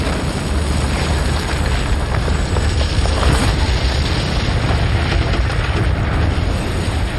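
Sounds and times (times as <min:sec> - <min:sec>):
huge explosion of a bridge: 0:00.0 - 0:07.1.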